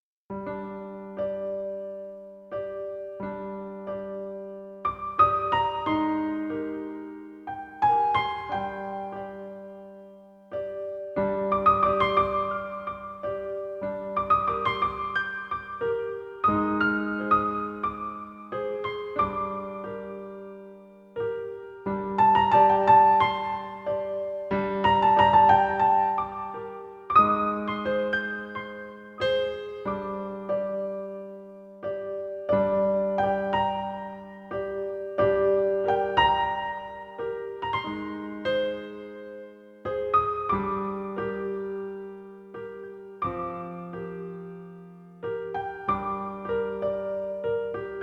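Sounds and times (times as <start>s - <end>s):
minimal piano: 0.3s - 48.0s.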